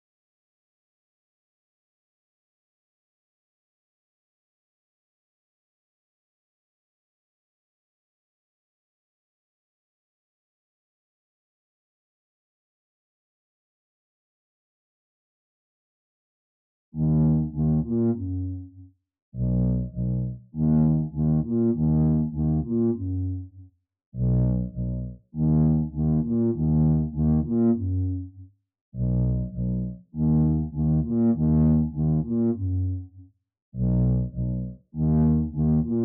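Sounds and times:
bass: 0:17.0 - 0:36.0.

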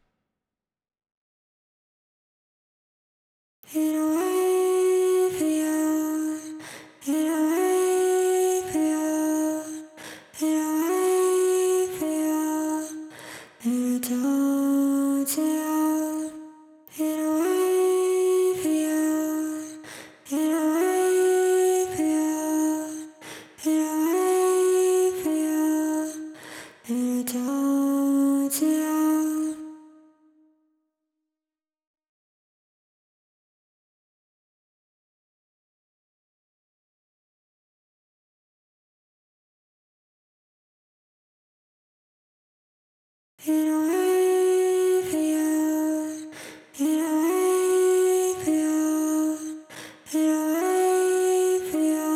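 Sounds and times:
vocals: 0:03.6 - 0:30.4, 0:43.4 - 0:52.1.

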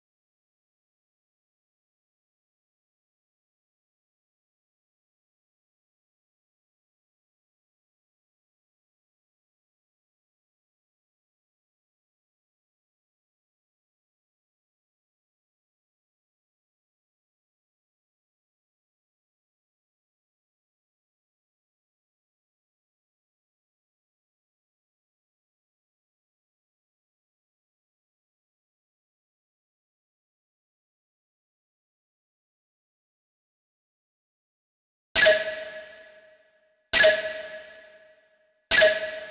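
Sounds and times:
snare drum: 0:35.2 - 0:36.1, 0:37.0 - 0:37.9, 0:38.7 - 0:39.2.

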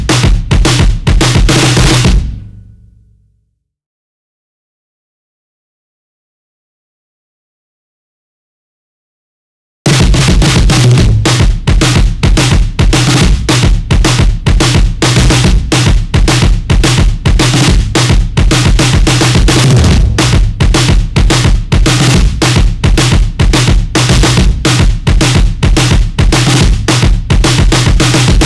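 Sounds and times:
drums: 0:00.0 - 0:03.2, 0:09.9 - 0:28.4.

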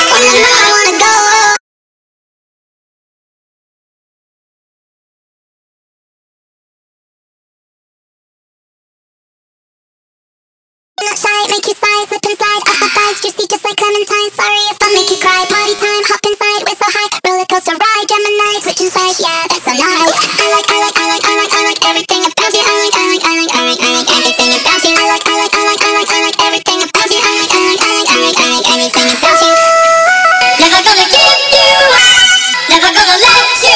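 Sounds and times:
person singing: 0:00.0 - 0:01.6, 0:11.0 - 0:33.7.

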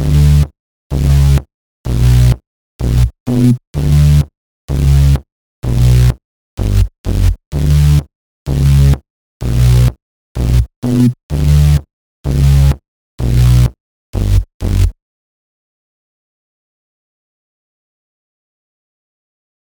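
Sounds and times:
bass in B minor: 0:00.0 - 0:15.0.

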